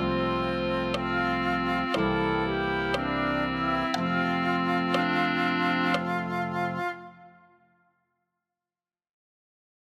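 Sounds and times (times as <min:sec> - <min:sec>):
clarinet: 0:00.0 - 0:07.8.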